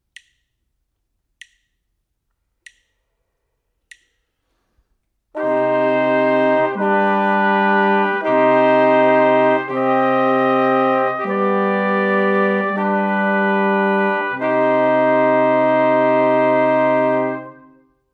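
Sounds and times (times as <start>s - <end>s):
brass quartet: 5.4s - 18.0s.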